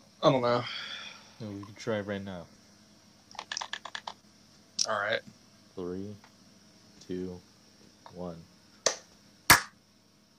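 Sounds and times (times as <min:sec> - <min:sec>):
speech: 0:00.2 - 0:02.6, 0:04.9 - 0:06.3, 0:07.1 - 0:07.5, 0:08.1 - 0:08.5
hand clap for audio sync: 0:08.9 - 0:09.8.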